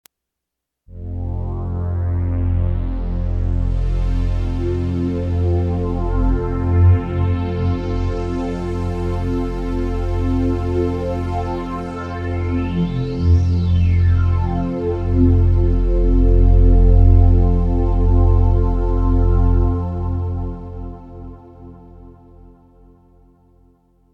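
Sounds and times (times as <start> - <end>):
Oasys slow dual synthesizer: 0.9 - 23.2.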